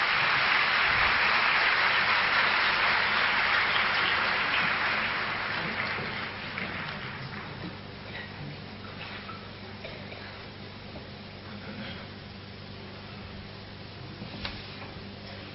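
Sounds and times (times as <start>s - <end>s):
audience applause: 0.0s - 7.8s.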